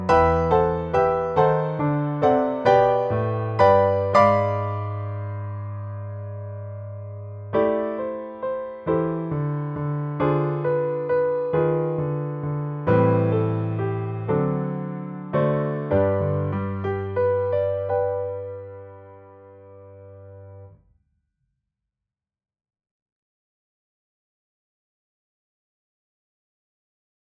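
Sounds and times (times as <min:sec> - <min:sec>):
piano: 0:00.0 - 0:20.9.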